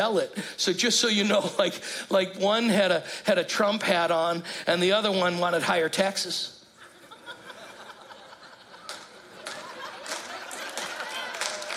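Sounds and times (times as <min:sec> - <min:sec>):
speech: 0:00.0 - 0:06.6
audience laughter: 0:06.8 - 0:11.7
audience clapping: 0:08.7 - 0:11.7.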